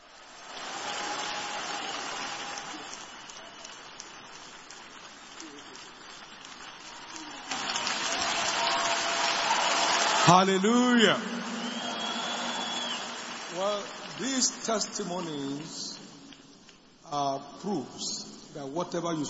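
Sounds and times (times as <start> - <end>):
large crowd clapping: 0.0 - 16.8
speech: 10.3 - 11.3, 13.6 - 15.8, 17.1 - 19.2.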